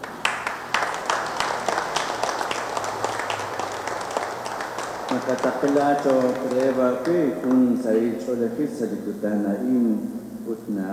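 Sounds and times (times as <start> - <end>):
crowd applauding: 0.0 - 8.2
speech: 5.1 - 10.9.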